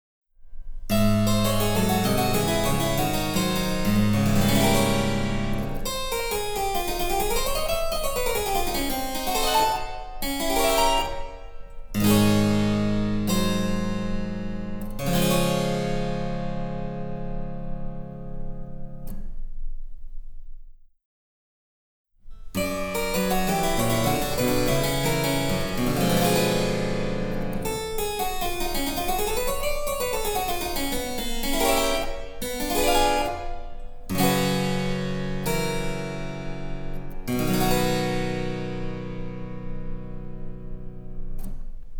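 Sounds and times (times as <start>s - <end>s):
harpsichord: 0.9s - 18.2s, 22.6s - 41.4s.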